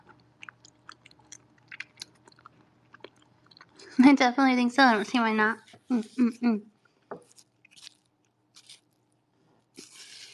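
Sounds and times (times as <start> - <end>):
person chewing during a quick meal: 0.0 - 3.8, 6.9 - 10.3
speech: 4.0 - 6.7.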